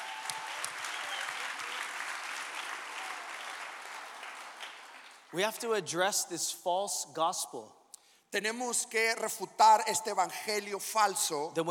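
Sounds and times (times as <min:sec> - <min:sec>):
audience applause: 0:00.0 - 0:05.5
speech: 0:05.3 - 0:11.6.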